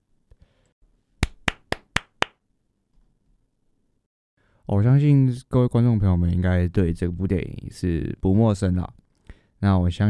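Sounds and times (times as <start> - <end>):
hand claps: 1.2 - 2.4
speech: 4.7 - 9.0, 9.6 - 10.0.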